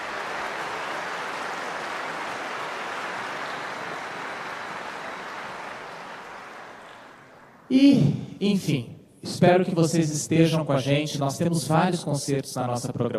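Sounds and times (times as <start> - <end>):
audience applause: 0.0 - 7.5
speech: 7.7 - 13.1.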